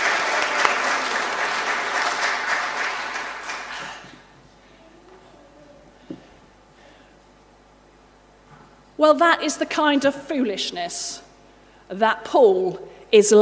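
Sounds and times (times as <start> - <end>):
audience clapping: 0.0 - 4.3
speech: 9.0 - 11.3, 11.9 - 13.3.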